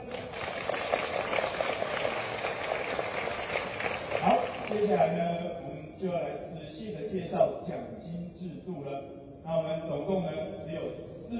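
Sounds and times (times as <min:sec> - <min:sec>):
audience applause: 0:00.0 - 0:04.9
speech: 0:04.8 - 0:11.3.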